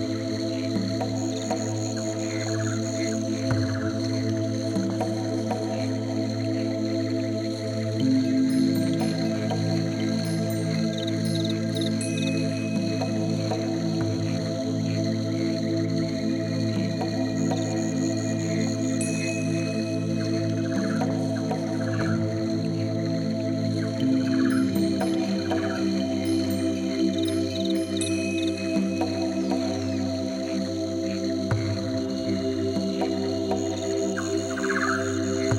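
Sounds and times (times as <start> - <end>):
Amazon rainforest ambience: 0.0 - 35.5.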